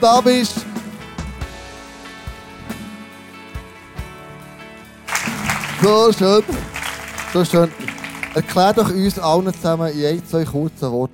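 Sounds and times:
speech: 0.0s - 0.6s, 5.8s - 6.7s, 7.3s - 11.1s
audience applause: 5.1s - 9.7s.

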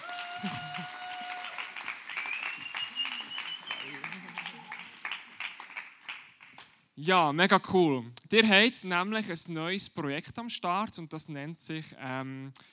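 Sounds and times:
audience clapping: 0.0s - 6.8s
speech: 0.4s - 0.6s, 7.0s - 12.7s.

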